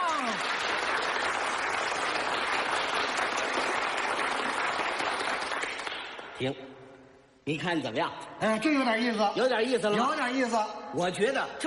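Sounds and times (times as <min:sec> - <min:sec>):
long applause: 0:00.0 - 0:06.4
speech: 0:06.4 - 0:06.7, 0:07.4 - 0:11.6.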